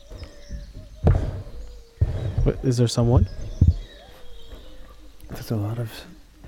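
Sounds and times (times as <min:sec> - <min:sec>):
footsteps on the ceiling above: 0:00.0 - 0:04.9
speech: 0:02.5 - 0:03.4, 0:05.5 - 0:06.2.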